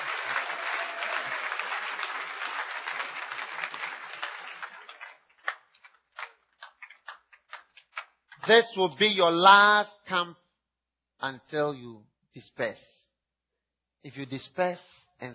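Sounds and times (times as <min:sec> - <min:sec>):
crowd clapping: 0:00.0 - 0:08.8
speech: 0:08.5 - 0:10.4, 0:11.2 - 0:13.0, 0:14.0 - 0:15.3.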